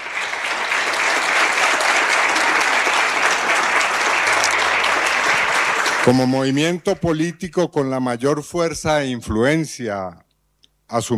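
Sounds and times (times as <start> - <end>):
audience applause: 0.0 - 7.3
speech: 6.0 - 10.2, 10.9 - 11.1.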